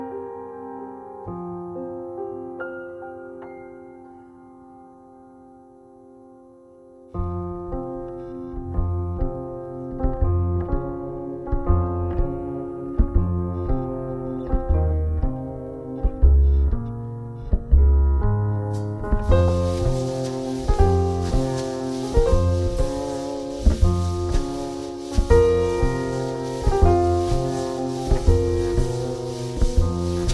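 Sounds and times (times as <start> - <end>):
jazz kolo folk dance music: 7.2 - 30.3.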